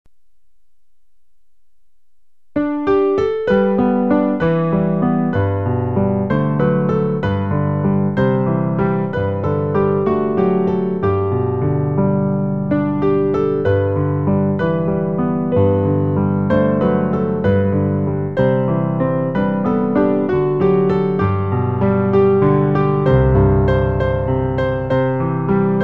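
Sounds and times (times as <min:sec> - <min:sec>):
piano: 0:00.1 - 0:25.8.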